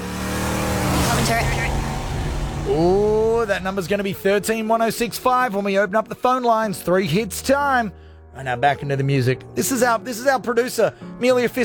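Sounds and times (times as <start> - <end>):
car driving by: 0.0 - 4.6
speech: 2.7 - 11.6.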